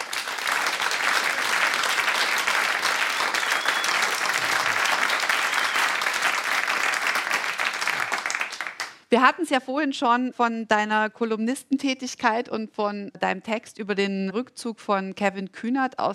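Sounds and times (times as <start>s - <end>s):
audience applause: 0.0s - 9.0s
speech: 9.1s - 16.1s.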